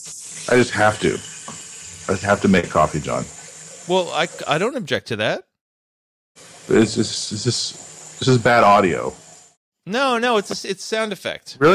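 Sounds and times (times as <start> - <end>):
speech: 0.0 - 1.3, 2.1 - 5.5, 6.7 - 9.2, 9.8 - 11.7
running tap water: 0.0 - 4.8, 6.4 - 9.6.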